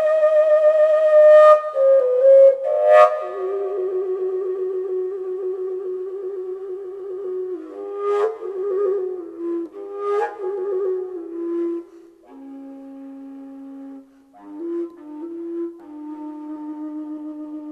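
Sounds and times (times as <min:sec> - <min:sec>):
Slovak folk art collapsible instrument: 0:00.0 - 0:17.6.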